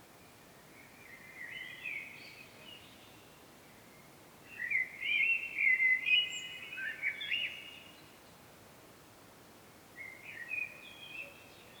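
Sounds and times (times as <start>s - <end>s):
common blackbird song: 0.8s - 8.2s, 10.0s - 11.7s.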